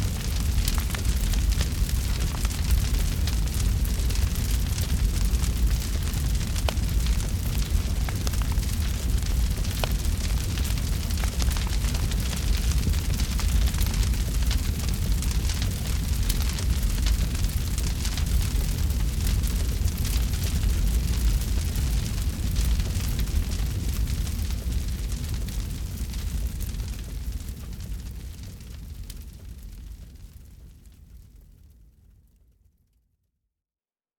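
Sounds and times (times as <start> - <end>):
flames: 0.0 - 32.5.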